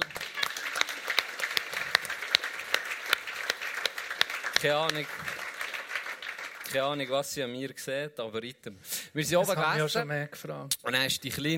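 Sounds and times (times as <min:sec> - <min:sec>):
audience applause: 0:00.0 - 0:07.3
speech: 0:04.6 - 0:05.4, 0:06.7 - 0:11.5.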